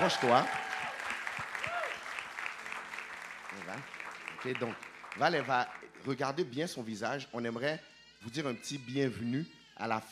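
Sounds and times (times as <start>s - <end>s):
audience applauding and cheering: 0.0s - 6.4s
speech: 0.1s - 0.6s, 3.6s - 10.1s.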